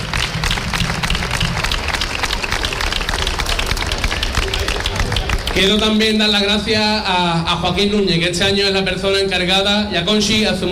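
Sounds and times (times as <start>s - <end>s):
audience applause: 0.0s - 6.6s
speech: 5.6s - 10.6s.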